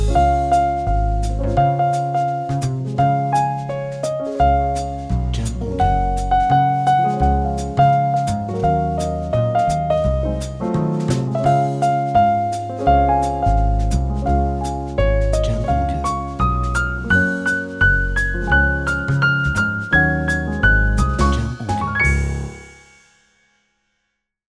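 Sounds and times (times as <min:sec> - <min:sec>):
Christmas swing jazz music: 0:00.0 - 0:22.7.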